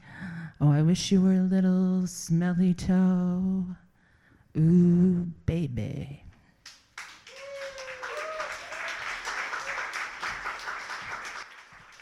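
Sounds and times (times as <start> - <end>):
speech: 0.6 - 3.8, 4.5 - 6.2
audience applause for poet: 7.0 - 12.0
cheers and whoops: 7.2 - 10.2.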